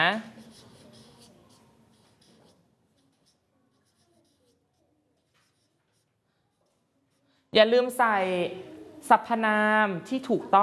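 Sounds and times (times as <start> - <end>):
child writing on paper with a pen or pencil: 0.0 - 7.4
speech: 7.6 - 10.6.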